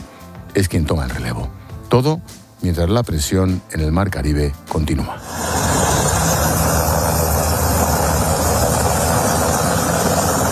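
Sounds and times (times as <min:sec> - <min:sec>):
speech: 0:00.6 - 0:05.4
military aircraft flying over a tanker: 0:05.2 - 0:10.5.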